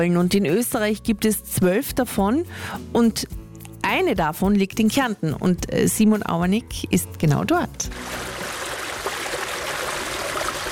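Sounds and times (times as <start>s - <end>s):
speech: 0.0s - 8.4s
water lapping on the shore of a lake on a summer day: 7.9s - 10.7s.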